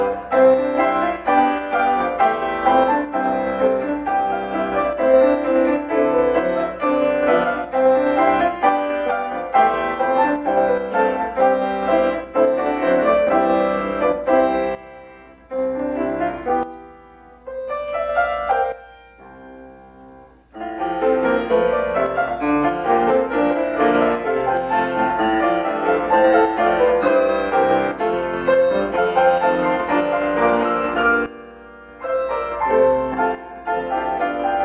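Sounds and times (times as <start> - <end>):
piano duet: 0.0 - 34.6.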